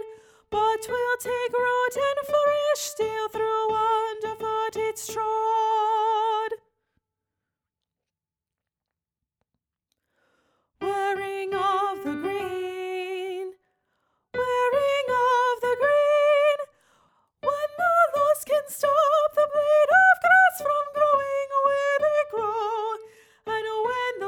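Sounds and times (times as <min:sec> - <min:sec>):
soprano singing a folk song: 0:00.0 - 0:06.6, 0:10.8 - 0:13.6, 0:14.4 - 0:16.8, 0:17.4 - 0:24.2.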